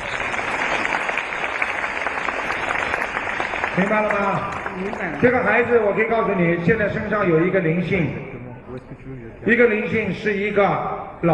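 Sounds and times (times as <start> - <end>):
audience applause: 0.0 - 5.8
speech: 3.8 - 8.3, 9.1 - 11.3.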